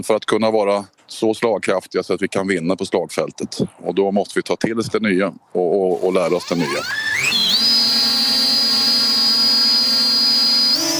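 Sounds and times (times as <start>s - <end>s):
speech: 0.0s - 7.6s
small drone lifting off at a training field outside Karlskrona: 5.9s - 10.9s.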